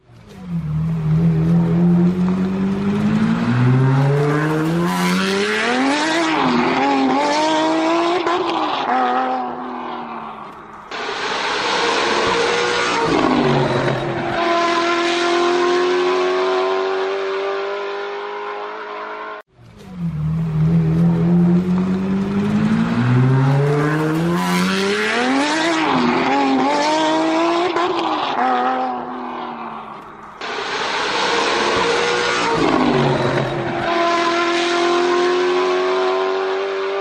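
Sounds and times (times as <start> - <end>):
Afghan-built Intop Helmand sports racing car engine revving: 0.2 - 36.9.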